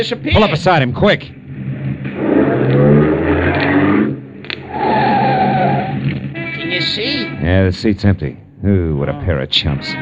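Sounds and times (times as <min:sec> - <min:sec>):
speech: 0:00.0 - 0:01.4, 0:06.8 - 0:10.0
car engine revving and accelerating during pursuit: 0:01.5 - 0:06.3
short screech: 0:02.2 - 0:06.1.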